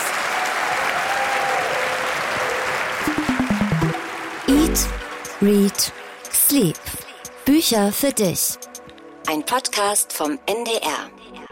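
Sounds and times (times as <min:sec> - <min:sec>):
live audience applauding: 0:00.0 - 0:05.4
rhythmic stomps or beats rising in pitch: 0:03.1 - 0:05.1
speech: 0:04.6 - 0:08.7, 0:09.3 - 0:11.2.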